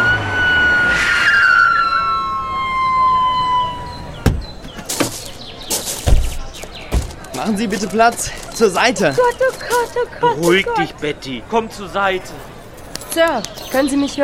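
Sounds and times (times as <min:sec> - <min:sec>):
ambulance arriving with siren: 0:00.0 - 0:04.5
laughter: 0:07.4 - 0:11.1
speech: 0:07.4 - 0:12.5, 0:13.2 - 0:14.2.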